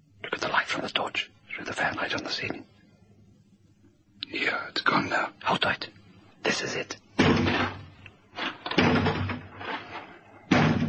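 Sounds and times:
speech: 0.8s - 2.8s, 4.3s - 7.7s
door being battered from outside with heavy booming blows: 7.2s - 10.8s.

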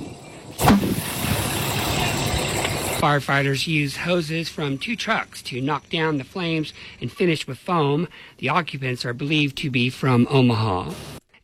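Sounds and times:
burning car tire exploding: 0.6s - 3.0s
speech: 3.0s - 11.1s.

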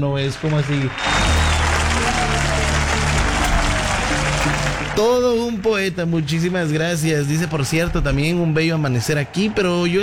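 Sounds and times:
speech: 0.0s - 1.4s, 5.0s - 10.0s
applause: 0.0s - 5.5s.

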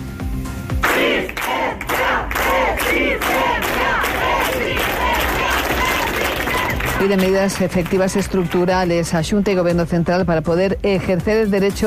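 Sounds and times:
crowd shouting a resistance chant: 0.8s - 7.0s
speech: 7.0s - 11.8s.

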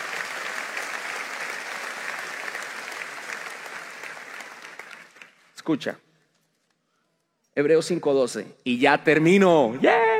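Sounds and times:
audience applause: 0.0s - 5.6s
speech: 5.6s - 6.0s, 7.6s - 10.0s.

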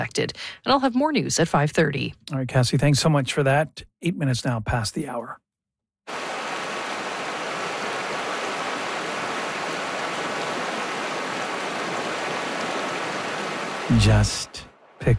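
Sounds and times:
speech: 0.0s - 5.4s, 13.9s - 15.1s
flowing water of a small river: 6.1s - 15.0s.

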